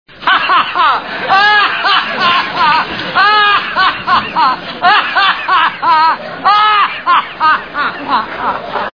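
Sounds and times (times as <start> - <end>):
person laughing: 0.3 - 8.8.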